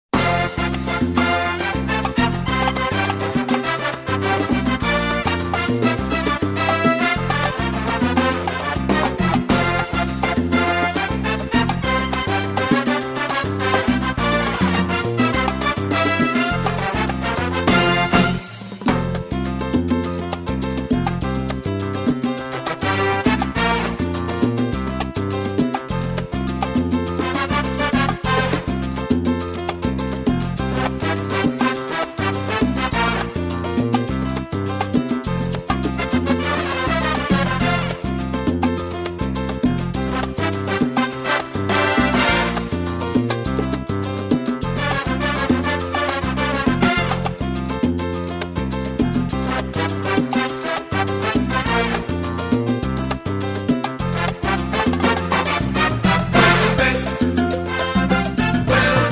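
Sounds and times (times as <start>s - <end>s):
salsa music at 110: 0.1s - 59.0s.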